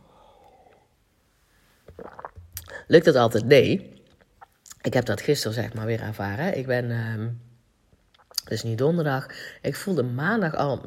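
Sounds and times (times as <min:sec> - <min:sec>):
sipping tea: 0:00.1 - 0:04.9, 0:07.9 - 0:08.5
speech: 0:02.9 - 0:04.0, 0:04.8 - 0:07.5, 0:08.5 - 0:10.8.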